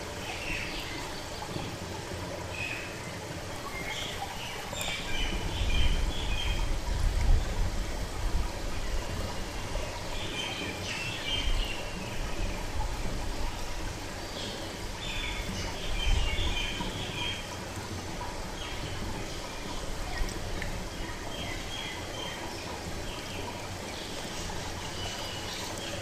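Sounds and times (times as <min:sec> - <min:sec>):
lotus pond soundscape: 0:00.0 - 0:26.0.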